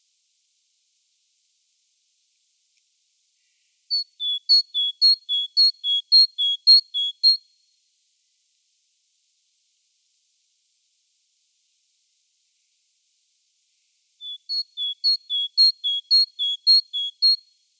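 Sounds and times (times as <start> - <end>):
great tit calling: 3.9 - 7.4, 14.2 - 17.4.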